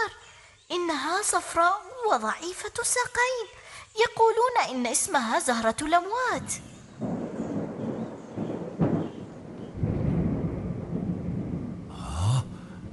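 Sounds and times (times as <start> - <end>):
speech: 0.1 - 7.2
steady wash of rain-like noise: 5.6 - 12.9
thunderstorm with rolling thunder: 6.7 - 12.9.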